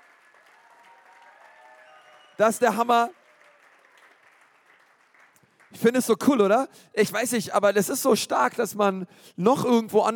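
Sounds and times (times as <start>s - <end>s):
audience applauding: 0.0s - 6.0s
speech: 2.4s - 3.2s, 5.8s - 10.1s.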